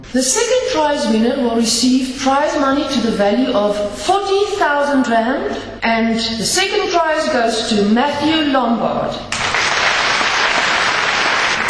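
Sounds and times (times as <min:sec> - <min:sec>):
speech: 0:00.0 - 0:09.3
crowd applauding young classical musicians on a winter night in Pretoria: 0:09.3 - 0:11.6.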